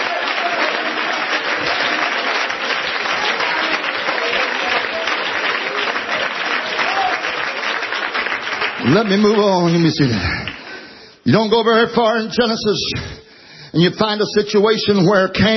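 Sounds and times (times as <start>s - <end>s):
audience clapping hands: 0.0s - 11.2s
speech: 8.9s - 10.5s, 11.2s - 15.5s.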